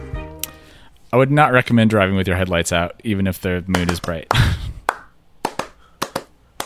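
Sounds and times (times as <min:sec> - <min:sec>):
speech: 0:01.1 - 0:04.6
claps and stomps: 0:03.7 - 0:06.6.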